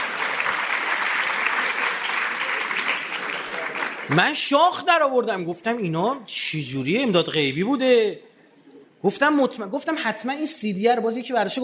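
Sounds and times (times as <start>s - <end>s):
audience applauding a first-place win in a competition: 0.0s - 4.5s
speech: 4.1s - 8.3s, 9.0s - 11.6s.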